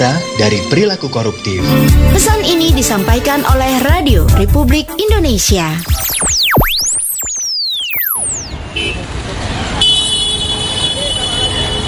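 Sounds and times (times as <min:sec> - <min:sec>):
speech: 0:00.0 - 0:06.1
car horns in a traffic jam: 0:08.5 - 0:09.2, 0:09.8 - 0:11.8
road noise: 0:08.5 - 0:11.8.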